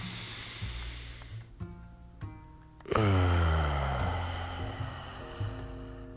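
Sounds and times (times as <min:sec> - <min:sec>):
person breathing in through nose and out mouth: 0:00.0 - 0:01.6, 0:02.9 - 0:06.1
sustained tonal music: 0:00.0 - 0:06.1.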